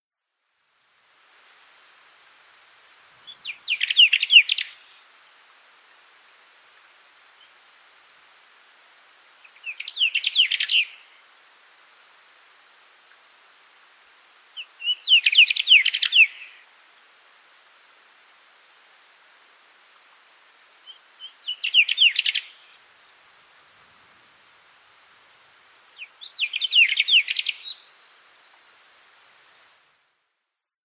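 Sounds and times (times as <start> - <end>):
bird chirping: 3.2 - 5.0, 9.4 - 11.2, 14.6 - 16.6, 20.8 - 22.8, 25.9 - 28.6.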